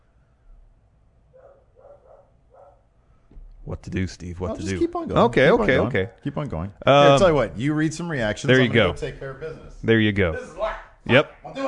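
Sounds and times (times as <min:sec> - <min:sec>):
dog barking at doorbell: 0:01.3 - 0:02.9
speech: 0:03.7 - 0:11.6.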